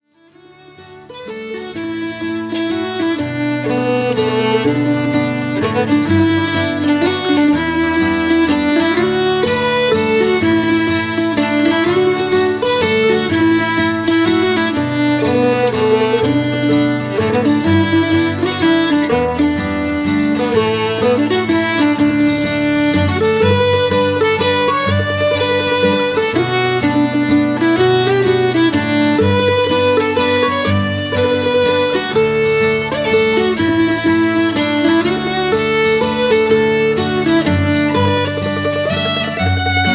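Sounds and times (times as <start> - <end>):
waltz music: 0.4 - 39.9.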